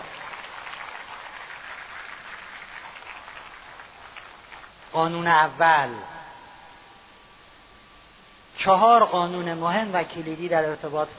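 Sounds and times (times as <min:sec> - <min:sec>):
audience applause: 0:00.0 - 0:04.7
speech: 0:04.9 - 0:06.1, 0:08.6 - 0:11.1.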